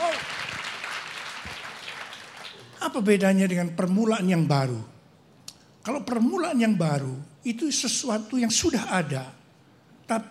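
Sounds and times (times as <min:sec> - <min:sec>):
audience applause: 0:00.0 - 0:02.8
speech: 0:02.8 - 0:04.9, 0:05.8 - 0:09.4, 0:10.1 - 0:10.2.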